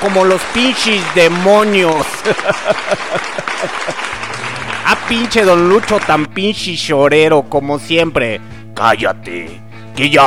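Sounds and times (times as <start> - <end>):
speech: 0.0 - 4.0, 4.8 - 10.2
applause: 0.0 - 6.3
laughter: 1.9 - 5.1.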